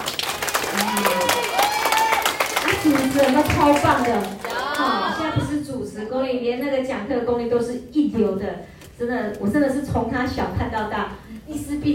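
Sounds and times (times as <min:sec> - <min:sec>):
audience applause: 0:00.0 - 0:05.1
speech: 0:03.6 - 0:04.4, 0:06.0 - 0:11.9.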